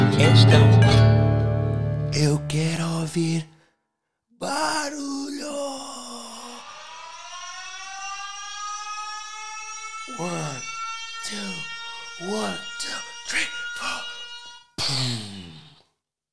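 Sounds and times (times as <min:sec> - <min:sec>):
speech: 0:00.2 - 0:01.0, 0:02.2 - 0:03.6, 0:04.4 - 0:06.0, 0:12.2 - 0:14.0
siren sound effect: 0:05.4 - 0:14.8.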